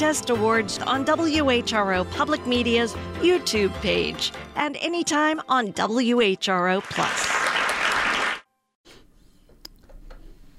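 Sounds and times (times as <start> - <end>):
speech: 0.0 - 7.4
applause: 6.8 - 8.5.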